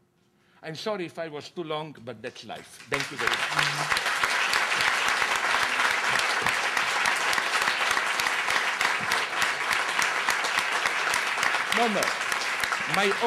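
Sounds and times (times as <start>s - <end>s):
speech: 0.6s - 4.1s, 11.8s - 12.2s, 12.9s - 13.2s
audience applause: 2.7s - 13.2s.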